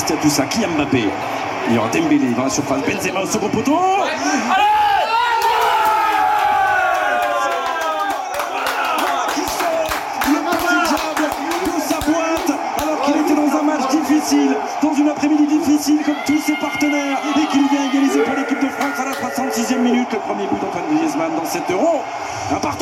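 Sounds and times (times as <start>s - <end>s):
football stadium crowd roaring: 0.0s - 22.8s
speech: 0.1s - 4.8s, 14.3s - 22.8s
crowd shouting: 4.0s - 22.8s
clapping: 6.4s - 13.2s, 18.8s - 19.3s
crowd whistling: 11.7s - 22.4s.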